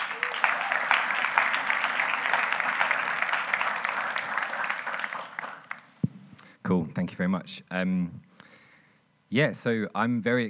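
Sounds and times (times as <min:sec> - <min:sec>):
audience applause welcoming a speaker to a meeting: 0:00.0 - 0:06.0
speech: 0:06.7 - 0:08.3, 0:09.3 - 0:10.4.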